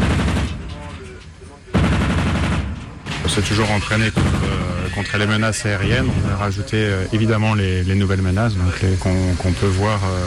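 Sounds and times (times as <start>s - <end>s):
machine gun firing: 0.0s - 1.0s, 1.7s - 5.0s
100 mm and 20 mm naval cannon firing: 0.0s - 6.7s
speech: 3.4s - 4.4s, 5.0s - 10.2s.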